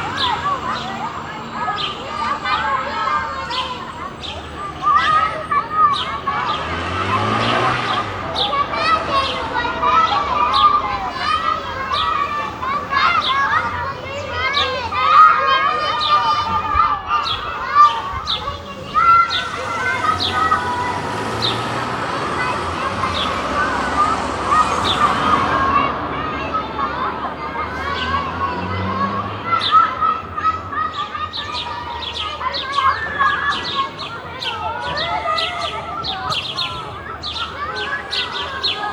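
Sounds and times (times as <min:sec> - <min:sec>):
playground ambience in Germany: 0:00.0 - 0:38.9.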